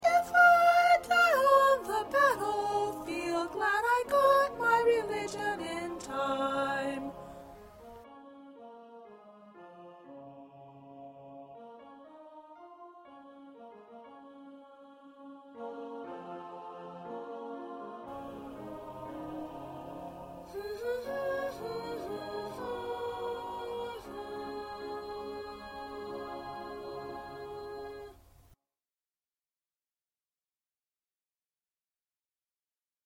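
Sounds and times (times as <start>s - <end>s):
second soprano singing: 0.0s - 9.2s, 13.0s - 28.2s.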